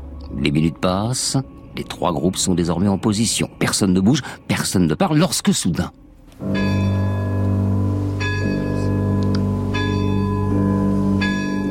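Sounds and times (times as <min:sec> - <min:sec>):
speech: 0:00.4 - 0:06.8
castle clock bell striking midnight: 0:06.4 - 0:11.6.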